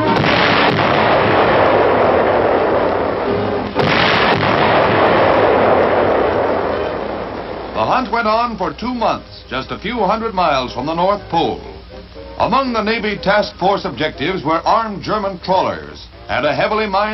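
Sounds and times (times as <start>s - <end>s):
explosions blasting through ice floes off Greenland: 0.1s - 8.2s
roaring rumble of debris: 0.1s - 8.8s
speech: 8.1s - 11.7s, 12.4s - 17.1s.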